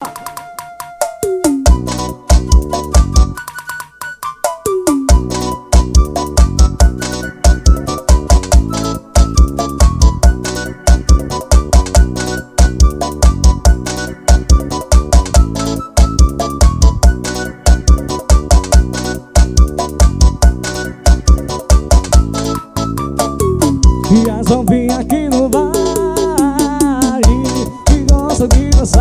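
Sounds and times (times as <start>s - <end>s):
forro music recorded live: 0.0s - 28.9s.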